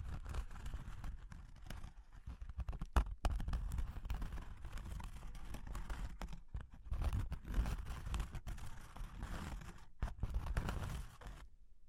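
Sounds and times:
rubbing and scraping on cork and wood: 0:00.0 - 0:11.4.

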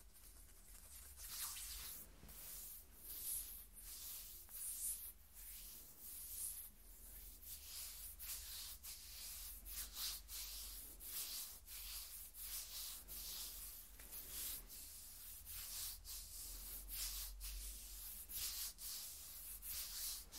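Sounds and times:
skin scratching: 0:00.0 - 0:06.7, 0:07.5 - 0:20.3.

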